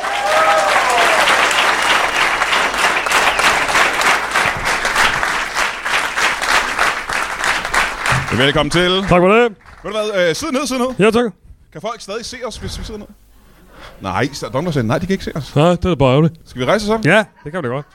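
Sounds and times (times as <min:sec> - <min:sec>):
audience applause at a live show: 0:00.0 - 0:10.1
speech: 0:08.4 - 0:13.2, 0:13.8 - 0:17.9.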